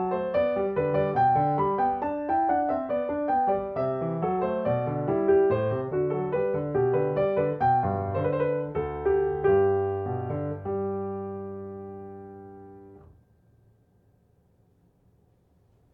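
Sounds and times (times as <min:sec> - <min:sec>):
baroque keyboard bourrée: 0:00.0 - 0:11.7.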